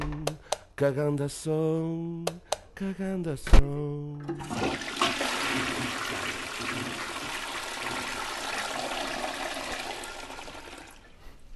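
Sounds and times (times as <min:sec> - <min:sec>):
speech: 0:00.8 - 0:07.1
toilet flush: 0:04.2 - 0:11.1.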